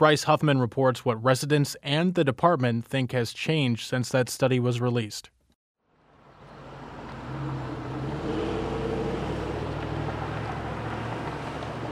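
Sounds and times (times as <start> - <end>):
speech: 0.0 - 5.4
street intersection traffic engine rumble: 5.9 - 11.9.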